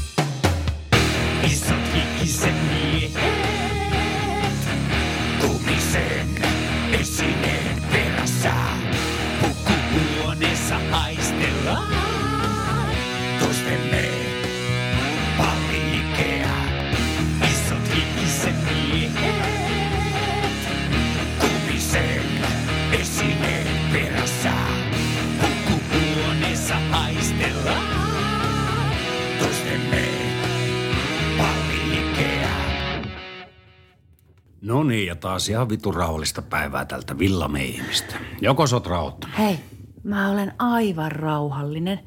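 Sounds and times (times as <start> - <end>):
organ-driven heavy metal music: 0.0 - 33.8
speech: 35.2 - 42.0.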